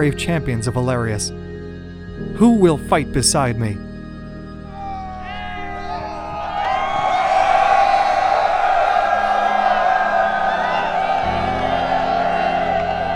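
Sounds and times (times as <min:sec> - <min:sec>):
speech: 0:00.0 - 0:01.6, 0:02.2 - 0:03.9
army shouting a collective war cry: 0:04.7 - 0:13.1.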